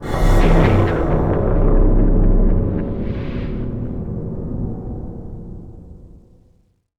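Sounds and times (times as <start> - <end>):
graveyard music stinger: 0.0 - 5.9.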